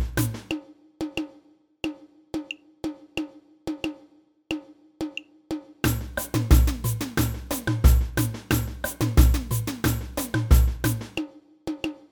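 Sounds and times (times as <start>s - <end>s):
samba band playing samba: 0.0s - 0.6s, 5.8s - 11.2s
repinique drum in a samba band: 0.0s - 12.0s.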